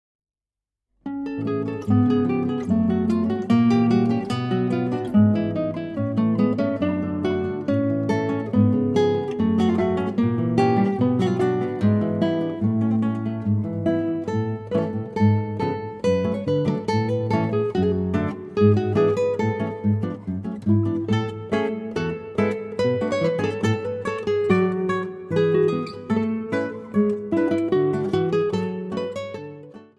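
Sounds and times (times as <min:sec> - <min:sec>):
Sephardic suite for two guitars: 0:01.0 - 0:29.9.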